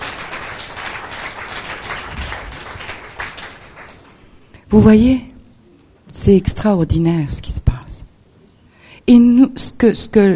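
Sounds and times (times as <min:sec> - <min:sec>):
audience applause: 0:00.0 - 0:04.3
speech: 0:04.7 - 0:05.3, 0:06.2 - 0:07.6, 0:09.1 - 0:10.3.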